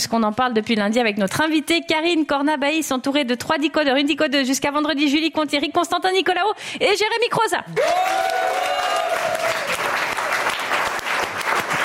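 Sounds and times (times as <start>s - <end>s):
speech: 0.0s - 8.7s
live studio audience applause on a French radio show: 7.8s - 11.8s.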